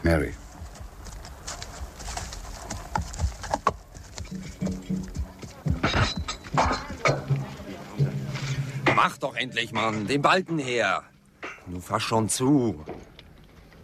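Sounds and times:
speech: 0.1 - 0.4, 9.0 - 11.1, 11.7 - 13.0
horse hooves clip-clopping: 0.3 - 8.1.

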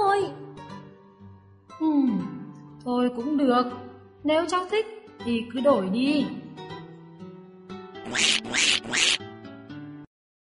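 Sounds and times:
speech: 1.8 - 6.4, 8.1 - 9.3
duckling quacking while swimming in a river: 8.1 - 9.2.

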